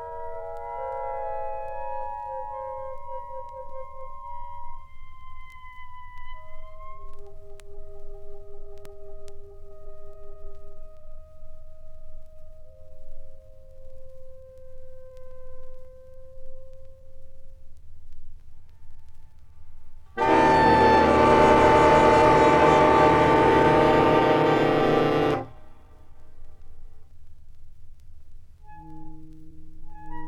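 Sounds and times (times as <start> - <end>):
saxophone orchestra: 20.2 - 25.6.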